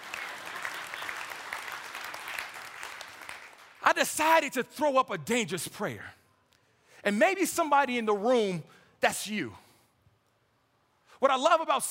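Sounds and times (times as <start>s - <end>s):
audience clapping: 0.0s - 4.0s
speech: 3.9s - 6.2s, 7.0s - 9.6s, 11.2s - 11.8s.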